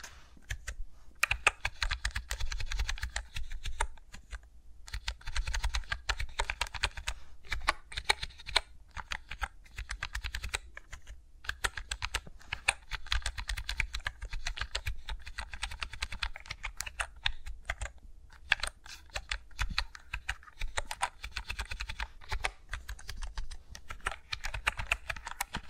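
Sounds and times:
fingers tapping and rustling on a computer keyboard: 0.5s - 25.6s.

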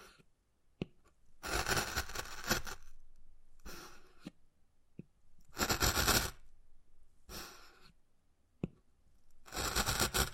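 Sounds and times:
wood carving rasping scratches: 1.4s - 2.9s, 5.5s - 6.4s, 9.4s - 10.3s.

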